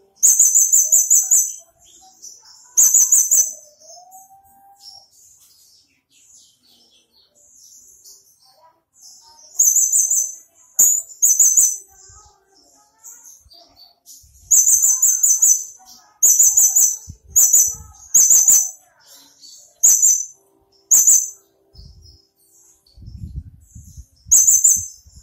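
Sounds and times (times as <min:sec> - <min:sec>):
small bird song of clear piercing high chirps: 0:00.0 - 0:25.2.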